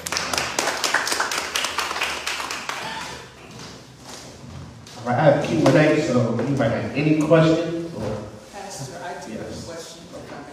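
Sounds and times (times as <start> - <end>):
audience clapping: 0.0 - 3.4
speech: 5.0 - 7.8.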